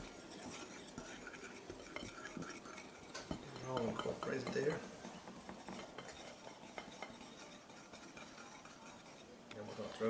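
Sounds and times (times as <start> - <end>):
whisking ingredients together: 0.0 - 10.0
speech: 3.7 - 5.0.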